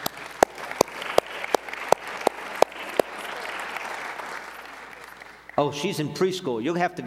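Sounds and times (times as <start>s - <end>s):
audience applauding: 0.0s - 5.6s
speech: 5.6s - 7.0s.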